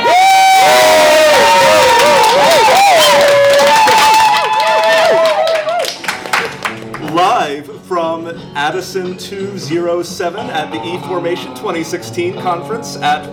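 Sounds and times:
audience cheering and whooping: 0:00.0 - 0:06.0
people clapping: 0:00.0 - 0:07.2
speech: 0:08.7 - 0:13.3.

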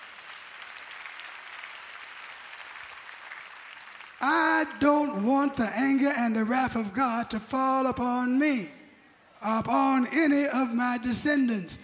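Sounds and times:
crowd, audience clapping hands: 0:00.0 - 0:04.8
speech: 0:04.2 - 0:08.8, 0:09.4 - 0:11.8.

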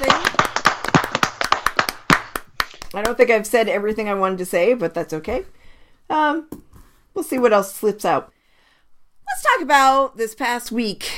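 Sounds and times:
round of applause: 0:00.0 - 0:02.9
speech: 0:03.0 - 0:06.6, 0:07.2 - 0:08.3, 0:09.4 - 0:11.1.

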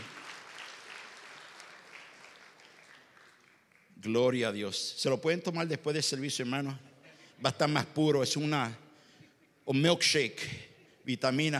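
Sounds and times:
audience applause: 0:00.0 - 0:04.0
speech: 0:04.0 - 0:08.8, 0:09.6 - 0:11.5.

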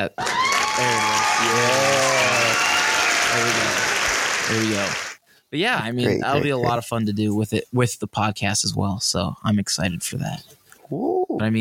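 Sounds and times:
speech: 0:00.0 - 0:02.0, 0:04.5 - 0:11.5
applause sound effect: 0:00.0 - 0:05.2.

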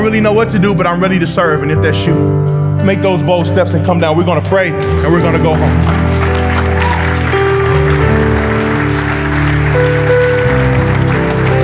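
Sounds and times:
speech: 0:00.0 - 0:06.2
sustained held musical chords: 0:00.0 - 0:11.6
crowd clapping: 0:04.2 - 0:11.6.

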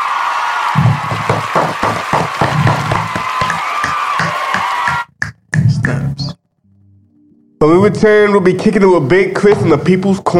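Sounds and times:
applause: 0:00.0 - 0:05.1
speech: 0:07.8 - 0:10.3.

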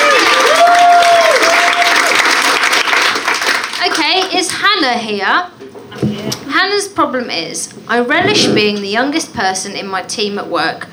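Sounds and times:
audience applause: 0:00.0 - 0:04.1
speech: 0:04.8 - 0:10.9.

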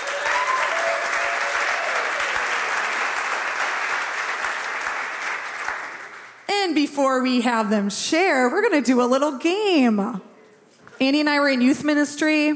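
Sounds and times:
person cheering: 0:00.0 - 0:02.4
audience applause: 0:00.0 - 0:06.5
speech: 0:06.8 - 0:10.3, 0:11.0 - 0:12.5.

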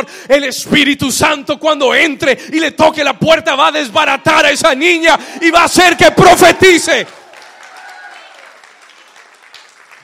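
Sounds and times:
speech: 0:00.0 - 0:07.2
audience applauding: 0:05.9 - 0:10.0.

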